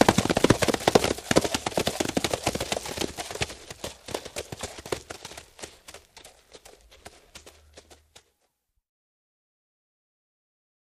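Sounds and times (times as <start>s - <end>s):
group of horses galloping to a stop: 0.0s - 8.5s.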